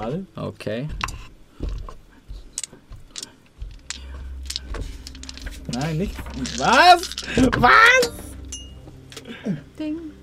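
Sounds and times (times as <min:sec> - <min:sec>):
speech: 0:00.0 - 0:01.7, 0:05.7 - 0:08.3, 0:09.3 - 0:10.2
dice being rolled: 0:01.0 - 0:08.0.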